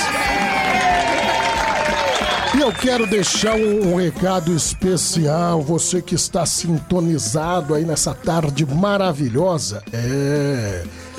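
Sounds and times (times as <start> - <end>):
studio audience applauding and cheering: 0.0 - 4.5
high wavering whistles: 1.9 - 5.5
speech: 2.6 - 11.1.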